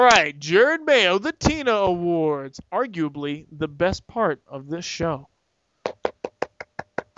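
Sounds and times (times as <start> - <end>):
speech: 0.2 - 5.3
hand clapping: 5.9 - 7.1.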